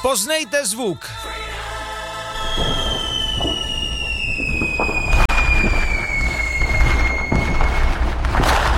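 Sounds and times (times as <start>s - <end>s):
speech: 0.1s - 1.6s
fireworks exploding: 2.3s - 8.7s.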